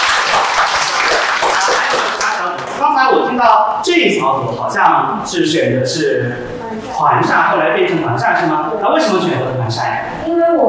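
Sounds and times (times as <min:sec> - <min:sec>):
audience applause: 0:00.0 - 0:02.7
speech: 0:03.4 - 0:10.6.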